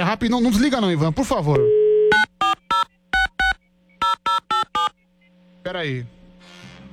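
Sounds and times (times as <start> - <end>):
speech: 0.1 - 2.2, 5.7 - 6.2
electronic phone keypad tones: 2.1 - 4.9.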